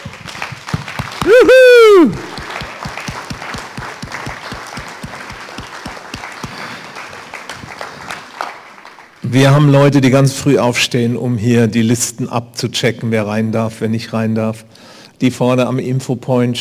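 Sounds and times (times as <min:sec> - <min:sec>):
enthusiastic crowd applause: 0:00.0 - 0:09.2
speech: 0:01.3 - 0:02.3, 0:09.3 - 0:16.5.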